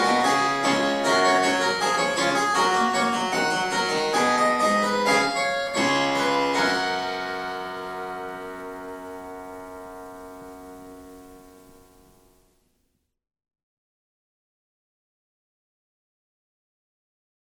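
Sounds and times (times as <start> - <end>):
fugue: 0.0 - 9.5.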